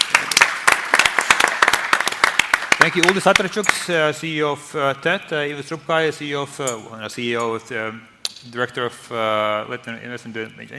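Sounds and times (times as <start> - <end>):
audience applause: 0.0 - 3.5
speech: 2.9 - 10.7.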